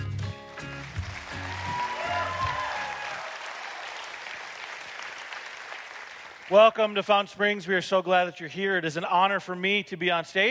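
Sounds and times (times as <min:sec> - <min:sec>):
audience applause: 0:00.5 - 0:06.6
speech: 0:06.5 - 0:10.4.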